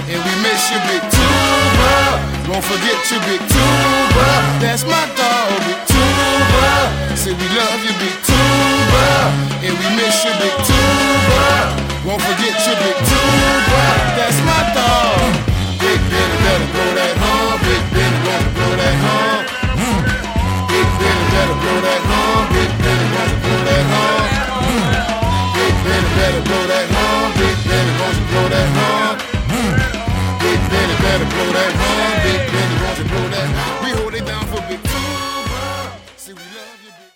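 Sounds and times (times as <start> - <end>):
big tuba in a brass band: 0.0 - 37.1.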